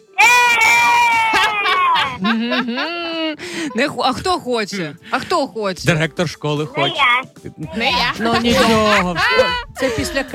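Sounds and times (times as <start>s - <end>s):
children shouting an answer: 0.0s - 2.2s
laughter: 0.6s - 4.2s, 7.4s - 10.3s
speech: 2.5s - 10.3s.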